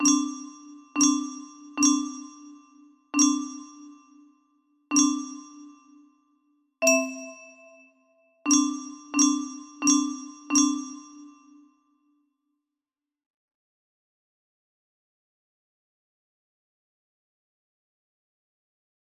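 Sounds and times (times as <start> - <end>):
music box melody: 0.0 - 4.3, 4.9 - 6.0, 6.8 - 11.7.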